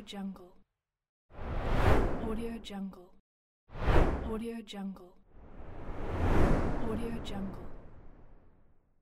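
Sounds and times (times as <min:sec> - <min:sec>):
whoosh: 0:01.3 - 0:02.3, 0:03.7 - 0:04.3, 0:05.3 - 0:08.7.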